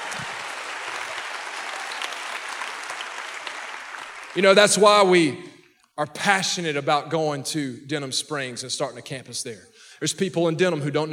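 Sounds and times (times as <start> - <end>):
audience clapping hands: 0.0 - 5.3
speech: 4.4 - 11.1.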